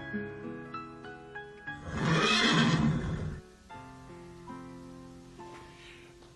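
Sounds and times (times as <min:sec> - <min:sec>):
horse neighing: 0:01.8 - 0:03.5.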